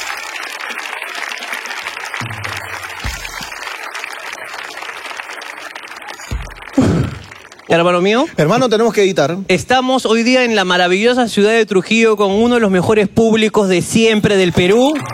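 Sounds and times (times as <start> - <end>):
applause: 0.0 - 9.0, 14.2 - 15.1
speech: 7.7 - 15.1.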